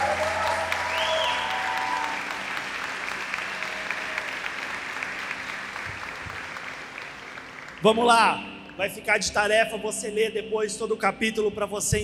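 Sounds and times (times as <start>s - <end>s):
audience applauding loudly: 0.0s - 8.8s
speech: 7.8s - 12.0s.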